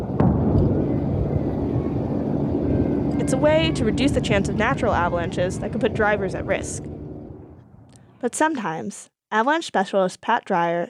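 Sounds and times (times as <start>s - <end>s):
helicopter used to set off planned avalanches in Alaska: 0.0s - 7.9s
speech: 3.3s - 6.9s, 8.2s - 10.8s.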